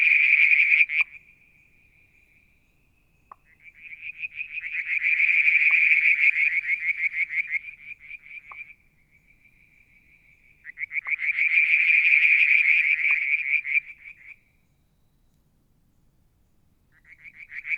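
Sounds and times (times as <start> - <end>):
frog trilling: 0.0 - 1.2, 3.3 - 8.8, 10.2 - 14.4, 16.9 - 17.7.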